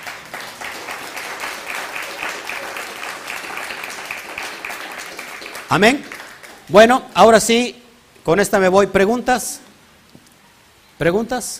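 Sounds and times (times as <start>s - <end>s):
applause: 0.0s - 6.8s
speech: 5.7s - 6.1s, 6.7s - 9.6s, 11.0s - 11.5s.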